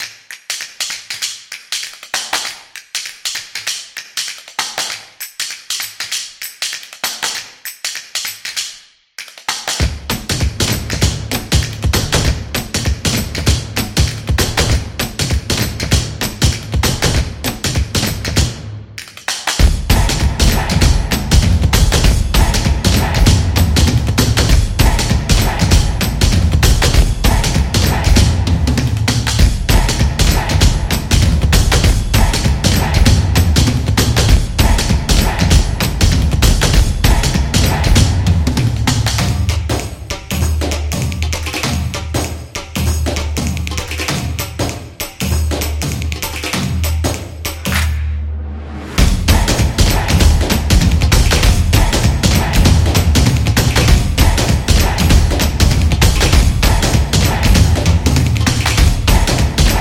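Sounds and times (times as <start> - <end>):
drumming music: 9.5 - 59.8.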